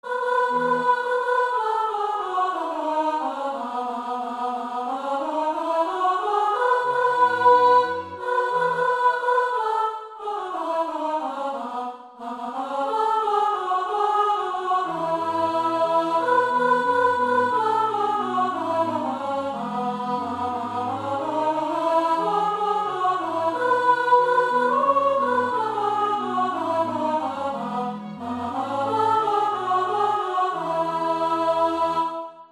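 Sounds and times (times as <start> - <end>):
sopranos singing: 0.0 - 32.5.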